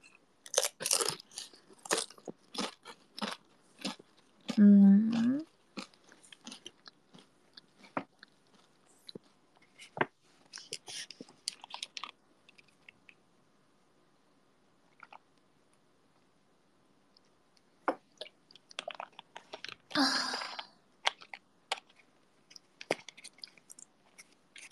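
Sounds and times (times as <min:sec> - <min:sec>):
crunchy chewing of potato chips: 0:00.0 - 0:13.2, 0:14.9 - 0:15.3, 0:18.1 - 0:20.0, 0:21.0 - 0:24.7.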